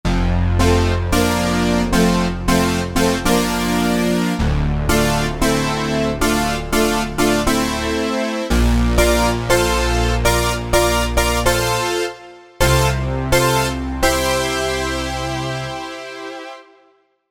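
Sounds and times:
80s retro synth: 0.1s - 16.7s.

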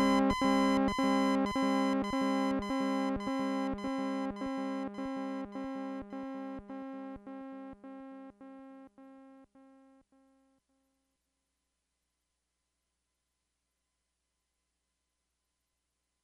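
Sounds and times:
random synth arpeggiator: 0.0s - 7.4s.

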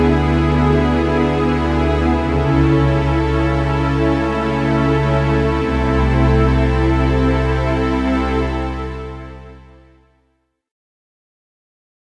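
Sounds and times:
JP-8 synthesizer strings patch on a Roland JV-880: 0.0s - 10.0s.

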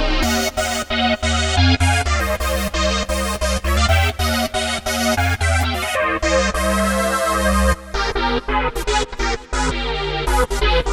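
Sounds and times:
techno lead synth: 0.2s - 10.9s.

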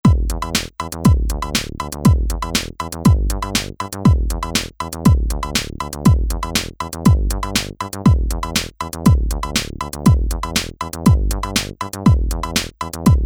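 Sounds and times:
house music: 0.1s - 13.2s.

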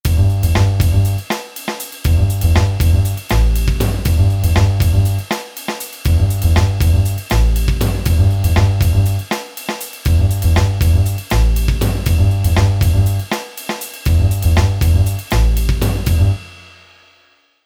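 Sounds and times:
jazz music: 0.1s - 1.4s, 2.0s - 5.4s, 6.1s - 9.4s, 10.1s - 13.3s, 14.1s - 16.5s.

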